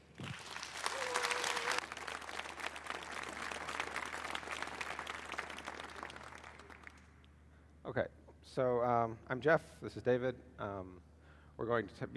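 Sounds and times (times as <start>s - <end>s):
crowd applauding: 0.0s - 7.2s
speech: 7.9s - 12.1s.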